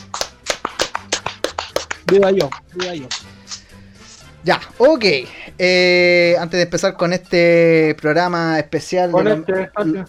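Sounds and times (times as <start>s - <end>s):
clapping: 0.0s - 3.4s
speech: 2.1s - 3.3s, 4.4s - 10.0s.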